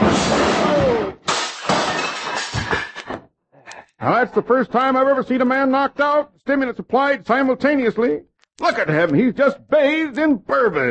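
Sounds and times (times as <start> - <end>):
glass bottles crashing and shattering behind bar: 0.0 - 3.1
speech: 4.0 - 10.8.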